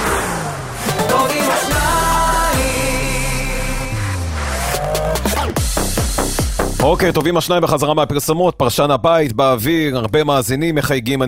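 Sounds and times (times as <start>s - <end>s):
car speeding away sound effect: 0.0s - 6.8s
speech: 6.8s - 11.2s.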